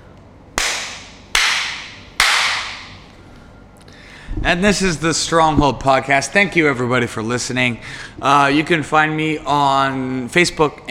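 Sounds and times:
faint low hum: 0.0 - 10.9
sharp hand claps: 0.6 - 3.0
speech: 4.4 - 10.9.

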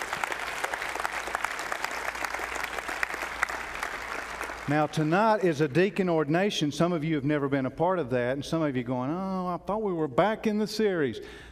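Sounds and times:
audience clapping: 0.0 - 6.0
speech: 4.7 - 11.5.

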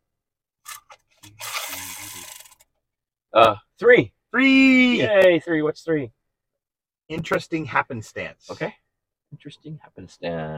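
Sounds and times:
topic wheel spinning: 1.4 - 2.6
speech: 3.3 - 6.2, 7.1 - 10.5.

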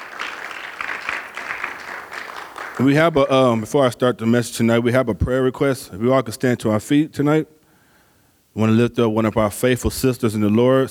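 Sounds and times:
church congregation clapping in praise during an evening service: 0.0 - 3.7
speech: 2.8 - 7.6, 8.6 - 10.8.

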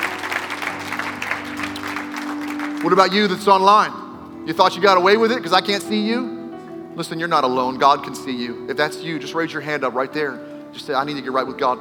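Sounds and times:
audience clapping: 0.0 - 3.9
speech: 2.8 - 6.3, 7.0 - 11.7.

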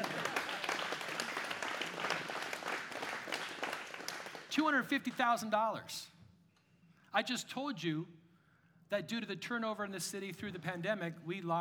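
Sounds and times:
audience clapping: 0.0 - 5.4
speech: 4.6 - 6.1, 7.1 - 8.2, 8.9 - 11.5.

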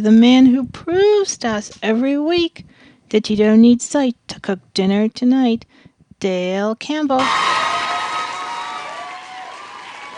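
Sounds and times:
speech: 0.0 - 7.6
rowdy studio audience cheering and whooping: 7.2 - 10.1.

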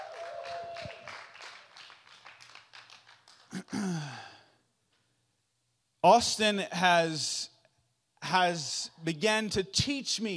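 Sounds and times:
audience clapping: 0.0 - 4.0
speech: 3.8 - 4.2, 6.0 - 7.4, 8.3 - 10.3.

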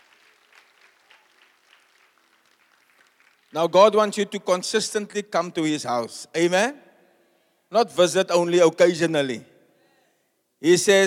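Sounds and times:
people clapping: 0.0 - 4.2
speech: 3.5 - 6.8, 7.7 - 9.5, 10.6 - 11.0.

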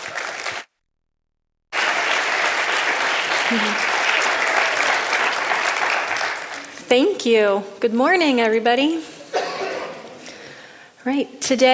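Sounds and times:
church congregation applauding to welcome a children's pastor: 0.0 - 0.7, 1.7 - 6.9
speech: 3.5 - 4.0, 6.9 - 9.1, 11.0 - 11.7.

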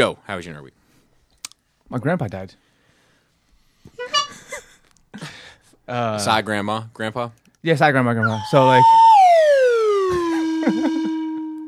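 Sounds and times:
speech: 0.0 - 0.8, 1.9 - 2.6, 5.9 - 9.5
sad descending whistle sound effect: 8.2 - 11.6.

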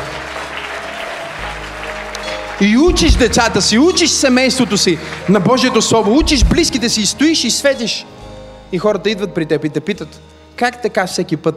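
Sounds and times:
church congregation clapping during a pastor's sermon: 0.0 - 7.4
speech: 2.6 - 11.5.

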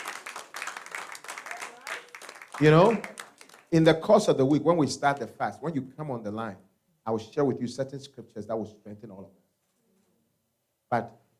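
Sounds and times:
audience clapping: 0.0 - 4.0
speech: 2.6 - 3.1, 3.7 - 9.4, 10.9 - 11.2.

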